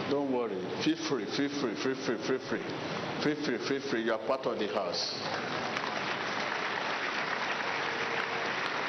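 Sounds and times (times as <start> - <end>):
speech: 0.1 - 5.6
audience clapping: 5.1 - 8.8.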